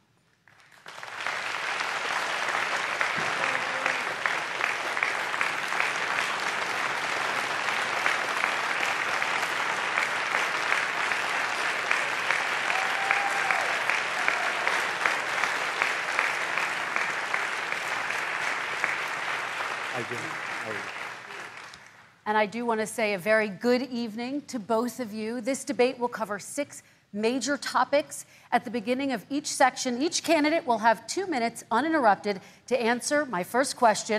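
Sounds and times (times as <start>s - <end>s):
audience applauding in a presidential debate hall: 0.4s - 22.1s
speech: 22.3s - 34.1s.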